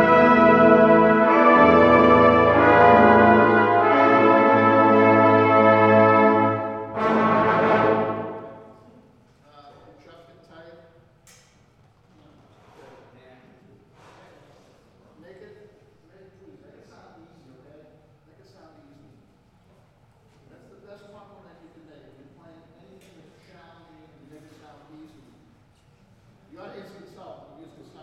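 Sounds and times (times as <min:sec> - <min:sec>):
brass band playing a parade tune: 0:00.0 - 0:09.0.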